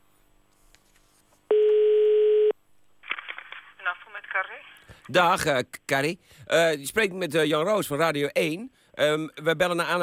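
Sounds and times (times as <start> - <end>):
telephone dial tone before a phone call: 1.5 - 2.5
speech: 5.1 - 10.0.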